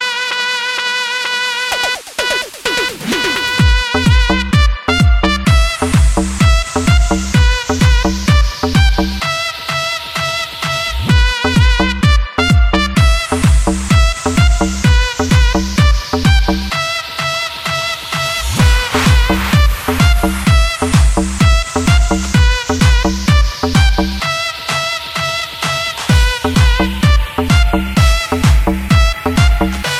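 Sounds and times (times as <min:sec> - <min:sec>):
trumpet playing guaracha: 0:00.0 - 0:29.9.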